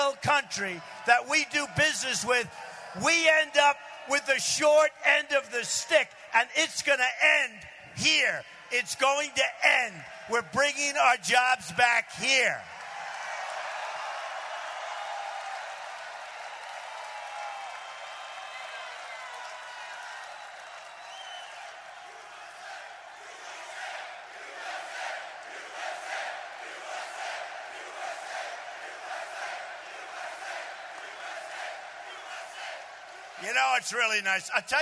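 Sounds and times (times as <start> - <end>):
large crowd roaring and cheering: 0.0 - 34.8
speech: 0.1 - 12.8, 33.5 - 34.8
crowd chanting USA: 22.0 - 33.4.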